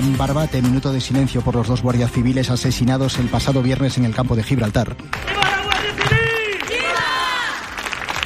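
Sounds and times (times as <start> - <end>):
speech: 0.2 - 5.5
scattered clapping: 4.1 - 8.2
crowd shouting against minister: 6.4 - 7.5.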